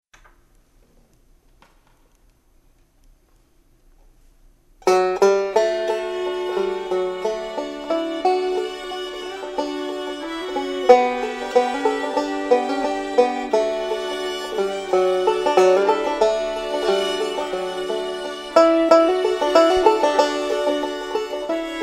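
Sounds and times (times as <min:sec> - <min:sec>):
banjo: 0:04.8 - 0:21.8
fiddle: 0:04.9 - 0:21.8.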